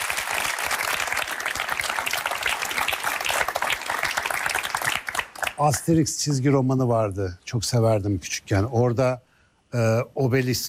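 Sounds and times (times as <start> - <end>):
crowd applause: 0.0 - 5.6
speech: 5.6 - 10.6.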